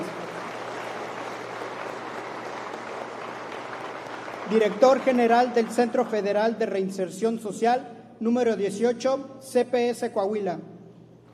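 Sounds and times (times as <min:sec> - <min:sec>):
audience applauding a federal prison director general at an official event: 0:00.0 - 0:06.6
speech: 0:04.5 - 0:10.7.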